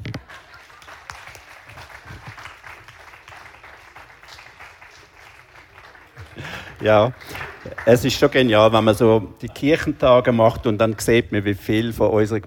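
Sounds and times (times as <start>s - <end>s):
audience applause: 0.0s - 8.8s
speech: 6.8s - 12.4s.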